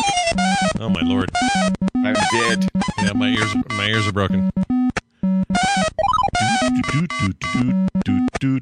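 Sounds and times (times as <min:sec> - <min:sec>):
Commodore 64 video game sound effects: 0:00.0 - 0:04.7, 0:05.6 - 0:08.6
speech: 0:00.8 - 0:04.7, 0:06.9 - 0:08.6.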